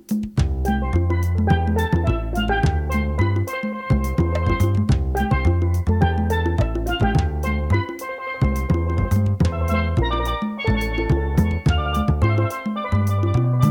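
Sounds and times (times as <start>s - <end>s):
steel drum: 0.4s - 13.6s.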